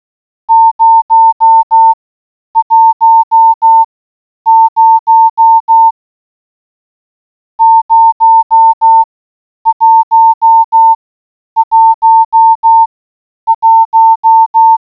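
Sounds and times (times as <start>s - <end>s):
morse code beeps: 0.5s - 2.0s, 2.6s - 3.9s, 4.5s - 5.9s, 7.6s - 9.1s, 9.7s - 11.0s, 11.6s - 12.9s, 13.5s - 14.8s.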